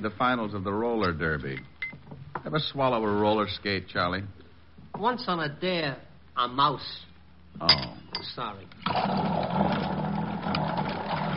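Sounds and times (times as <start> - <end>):
speech: 0.0 - 1.8, 2.4 - 9.8
electric drink mixer running in a bar: 8.8 - 11.3.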